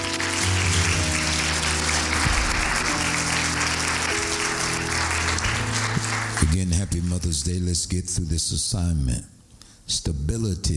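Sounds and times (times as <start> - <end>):
large crowd clapping: 0.0 - 7.4
sustained low organ or keyboard tones: 0.0 - 8.8
speech: 7.4 - 10.7.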